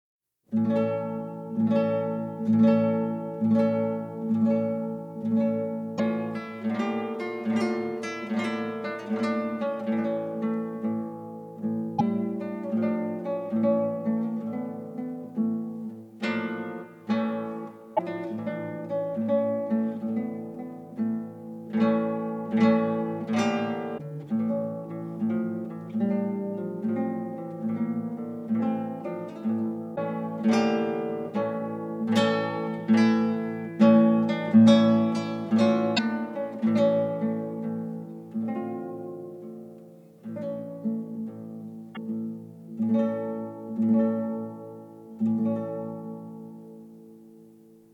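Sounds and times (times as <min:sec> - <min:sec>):
guitar preludes in D minor: 0:00.5 - 0:47.1.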